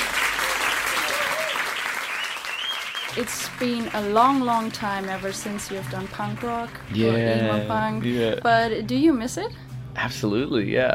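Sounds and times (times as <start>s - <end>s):
audience applause: 0.0s - 6.9s
speech: 3.2s - 10.9s.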